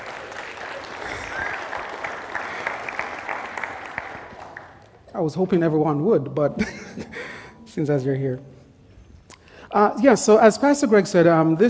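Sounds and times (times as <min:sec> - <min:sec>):
audience applause: 0:00.0 - 0:05.0
speech: 0:05.2 - 0:08.5, 0:09.7 - 0:11.6.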